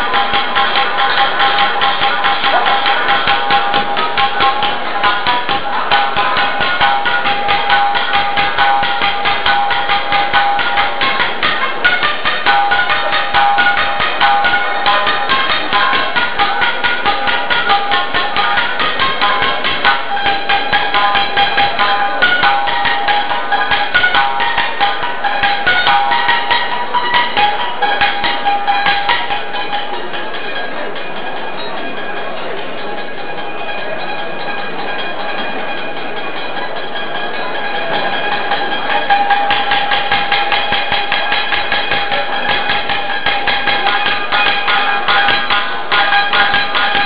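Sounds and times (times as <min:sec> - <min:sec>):
shamisen playing at a banquet: 0:00.0 - 0:47.0.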